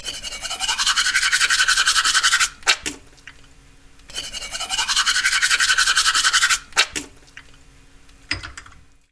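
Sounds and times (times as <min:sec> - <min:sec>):
brushing teeth: 0:00.0 - 0:02.8, 0:04.1 - 0:06.8.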